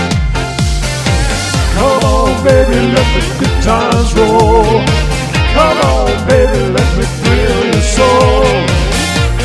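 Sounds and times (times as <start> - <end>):
harmony: 0.1 - 9.3.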